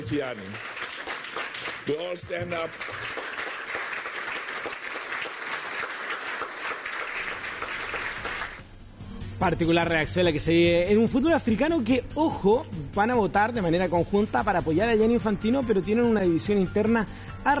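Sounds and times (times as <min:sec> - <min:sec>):
audience standing and applauding: 0:00.0 - 0:08.6
speech: 0:00.1 - 0:00.8, 0:01.9 - 0:03.1, 0:09.4 - 0:17.5.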